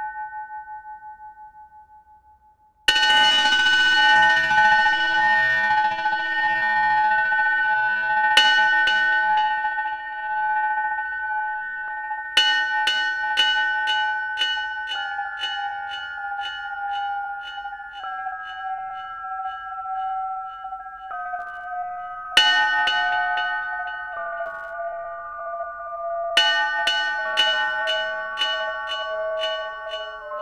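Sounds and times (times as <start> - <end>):
bells ringing: 2.9 - 30.3.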